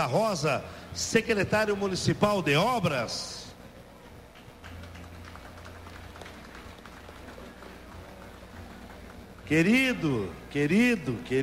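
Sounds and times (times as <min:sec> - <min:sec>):
speech: 0:00.0 - 0:03.4, 0:09.5 - 0:11.4
round of applause: 0:04.3 - 0:10.3.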